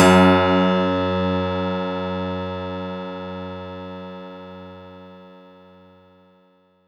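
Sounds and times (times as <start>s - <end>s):
synth note F#2: 0.0s - 2.2s.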